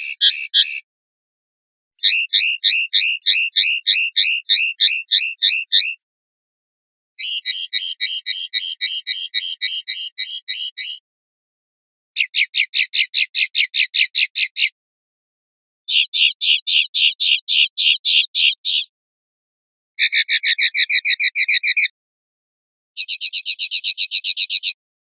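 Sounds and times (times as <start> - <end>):
linnet calling: 0.0 - 0.8, 2.0 - 6.0, 7.2 - 11.0, 12.2 - 14.8, 15.9 - 18.9, 20.0 - 21.9, 23.0 - 24.8.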